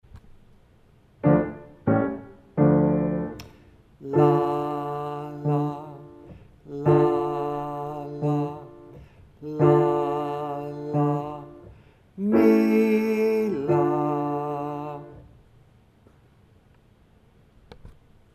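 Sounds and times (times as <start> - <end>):
Latvian folk song: 1.2 - 15.3.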